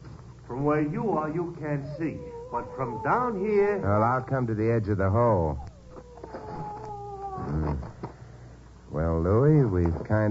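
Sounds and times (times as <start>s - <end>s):
speech: 0.5s - 5.7s, 9.0s - 10.3s
dog howling: 1.0s - 8.0s.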